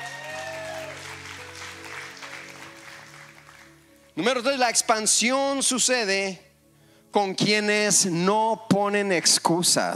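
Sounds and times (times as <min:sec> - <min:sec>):
crowd clapping: 0:00.0 - 0:03.9
speech: 0:04.2 - 0:06.5, 0:07.1 - 0:09.9.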